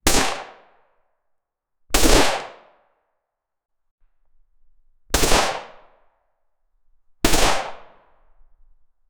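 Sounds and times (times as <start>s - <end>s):
MCX Spear .277 Fury single shot: 0.0s - 0.7s, 2.0s - 2.7s, 5.2s - 5.8s, 7.2s - 8.0s.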